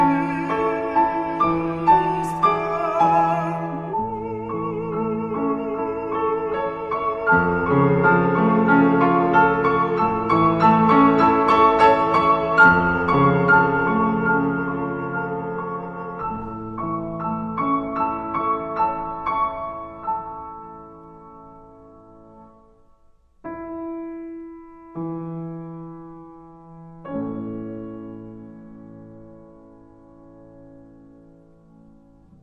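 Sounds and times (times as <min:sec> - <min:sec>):
Polish songs: 0:00.0 - 0:18.3.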